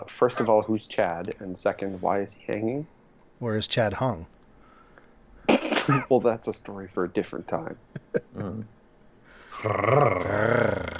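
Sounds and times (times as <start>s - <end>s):
speech: 0.1s - 4.4s, 5.9s - 8.8s, 9.6s - 10.6s
laughter: 7.9s - 8.7s
person growling: 9.5s - 10.9s.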